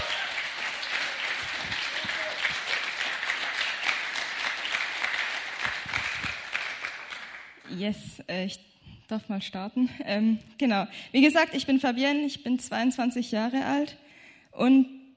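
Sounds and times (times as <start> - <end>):
audience applause: 0.0 - 7.6
speech: 7.8 - 14.0, 14.6 - 15.0.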